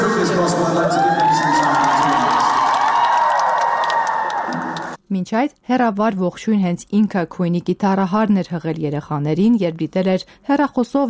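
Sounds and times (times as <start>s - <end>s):
audience clapping as children and a guitarist meet on stage: 0.7s - 5.0s
speech: 5.2s - 11.0s.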